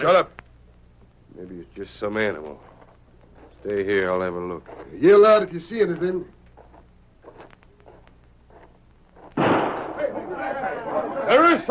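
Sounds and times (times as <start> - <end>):
speech: 0.0 - 0.4, 1.4 - 2.7, 3.6 - 6.4
gunshot: 9.4 - 10.2.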